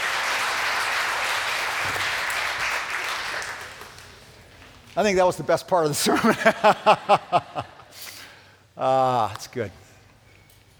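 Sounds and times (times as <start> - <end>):
audience clapping for children during a church sermon: 0.0 - 4.6
speech: 5.0 - 8.1, 8.8 - 9.8
laughter: 6.0 - 8.0.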